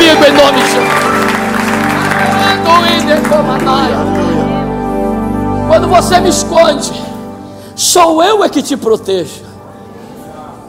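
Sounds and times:
audience applauding: 0.0 - 4.5
speech: 3.0 - 4.7, 5.8 - 7.1, 7.8 - 9.5.

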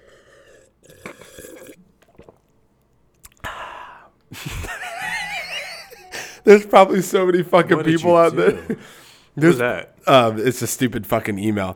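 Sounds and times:
person drinking water from a glass: 0.0 - 4.3
laughter: 4.4 - 6.6, 7.8 - 9.0
speech: 6.5 - 11.7.

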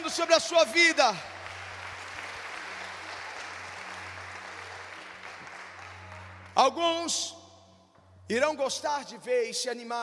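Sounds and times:
audience applauding: 0.0 - 6.9
speech: 0.1 - 1.4, 6.6 - 7.4, 8.3 - 10.0.

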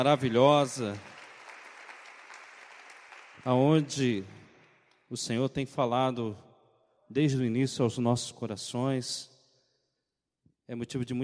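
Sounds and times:
speech: 0.0 - 1.1, 3.4 - 4.4, 5.1 - 6.5, 7.1 - 9.3, 10.7 - 11.2
audience applauding: 0.0 - 4.4.

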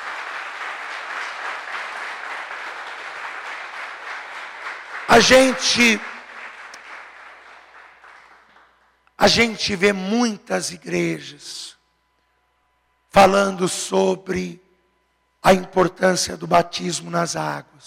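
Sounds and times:
audience applauding: 0.0 - 8.9
speech: 5.1 - 6.1, 9.2 - 11.8, 13.2 - 14.6, 15.4 - 17.8.

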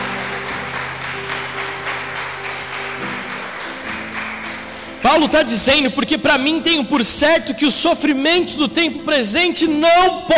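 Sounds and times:
audience applauding loudly: 0.0 - 5.8
speech: 5.0 - 10.3.

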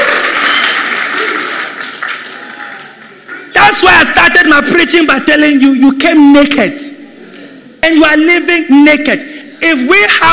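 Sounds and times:
audience clapping: 0.0 - 3.3
speech: 4.2 - 7.0, 7.8 - 10.3.

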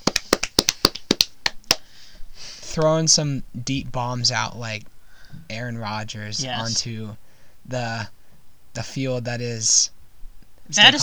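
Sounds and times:
hand clapping: 0.0 - 2.1
speech: 2.8 - 4.9, 5.5 - 8.2, 8.8 - 10.0, 10.7 - 11.0.

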